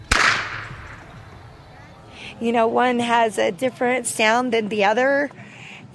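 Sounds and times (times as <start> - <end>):
whip crack: 0.0 - 1.1
speech: 2.4 - 5.4.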